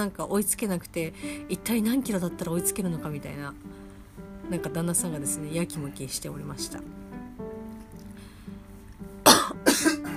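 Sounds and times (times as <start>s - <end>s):
speech: 0.0s - 3.8s, 4.5s - 7.0s
cough: 9.2s - 10.1s.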